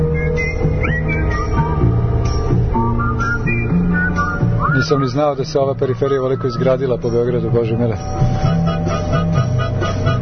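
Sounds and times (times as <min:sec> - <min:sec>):
person whistling along to 1960s-style music: 0:00.0 - 0:01.9, 0:02.7 - 0:05.3
1960s-style music: 0:00.0 - 0:10.2
speech: 0:04.9 - 0:08.5.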